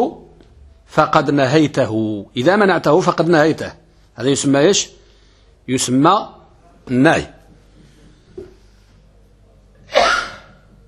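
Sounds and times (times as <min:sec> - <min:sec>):
speech: 0:01.0 - 0:05.0, 0:05.6 - 0:07.4
person sneezing: 0:09.9 - 0:10.6.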